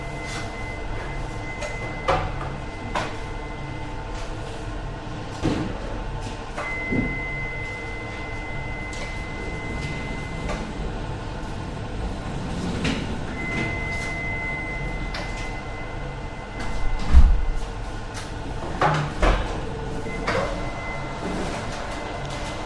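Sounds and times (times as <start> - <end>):
bakery beeping: 0.0 - 4.0, 6.6 - 10.8, 13.2 - 18.1, 19.7 - 22.6
bakers working in a bakery: 0.0 - 22.6
bakery machine rumbling: 0.0 - 22.6.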